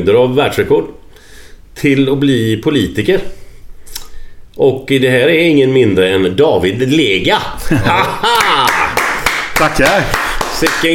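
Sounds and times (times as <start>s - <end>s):
speech: 0.0s - 1.0s, 1.8s - 3.4s, 4.6s - 8.9s, 9.6s - 10.9s
people chuckling: 7.6s - 9.2s
audience applause: 8.3s - 10.9s.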